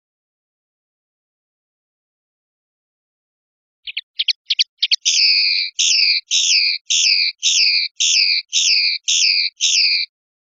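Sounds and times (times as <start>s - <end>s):
European goldfinch chirping: 3.9s - 10.1s
speech: 5.4s - 10.2s.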